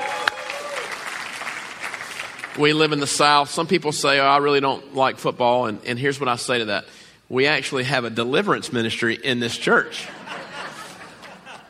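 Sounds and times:
crowd clapping: 0:00.0 - 0:03.0
speech: 0:02.6 - 0:10.2
laughter: 0:10.0 - 0:11.6.

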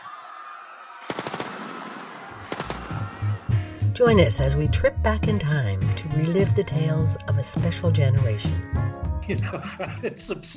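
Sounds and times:
automatic gunfire into a crowd: 0:01.1 - 0:03.0
speech: 0:04.0 - 0:10.5
laughter: 0:09.2 - 0:10.5.

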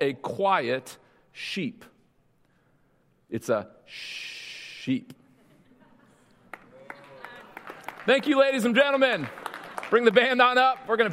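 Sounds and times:
speech: 0:00.0 - 0:01.9, 0:03.3 - 0:05.2, 0:08.0 - 0:11.1
audience applause after a joke: 0:06.5 - 0:11.1.

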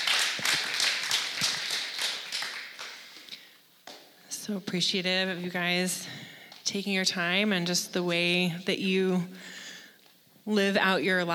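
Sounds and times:
audience applause: 0:00.0 - 0:03.2
speech: 0:04.5 - 0:09.5, 0:10.4 - 0:11.3.

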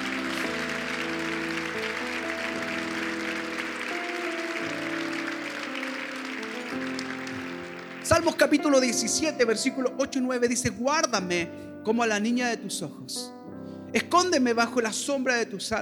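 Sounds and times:
audience applause: 0:00.0 - 0:09.1
speech: 0:08.1 - 0:15.7.

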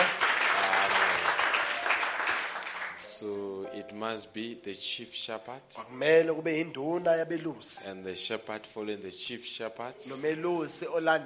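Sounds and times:
round of applause: 0:00.0 - 0:03.1
speech: 0:04.0 - 0:11.2.

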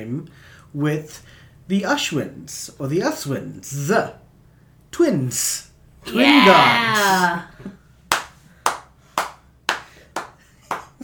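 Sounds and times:
speech: 0:00.0 - 0:04.2, 0:04.9 - 0:07.8
hand claps: 0:08.1 - 0:11.0.

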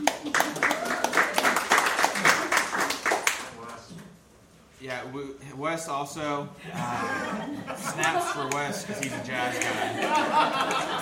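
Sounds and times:
audience clapping: 0:00.0 - 0:03.8, 0:08.0 - 0:11.0
speech: 0:05.0 - 0:11.0
laughter: 0:06.6 - 0:11.0.

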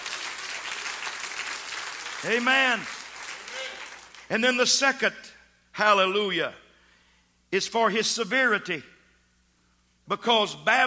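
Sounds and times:
audience hand clapping: 0:00.0 - 0:04.4
speech: 0:02.2 - 0:03.0, 0:04.3 - 0:06.6, 0:07.5 - 0:08.9, 0:10.1 - 0:10.8.

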